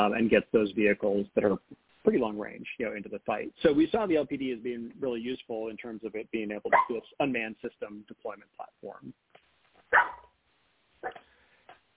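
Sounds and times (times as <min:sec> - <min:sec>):
speech: 0:00.0 - 0:09.2, 0:09.9 - 0:10.2
dog barking: 0:09.9 - 0:10.3.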